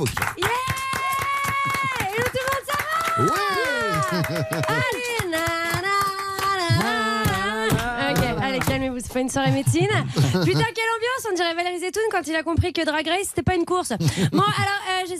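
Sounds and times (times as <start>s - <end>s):
speech: 0.0s - 0.3s, 4.1s - 5.6s, 8.6s - 15.1s
studio audience applause: 0.0s - 9.3s
laughter: 3.2s - 5.0s, 7.8s - 10.8s, 14.0s - 14.8s.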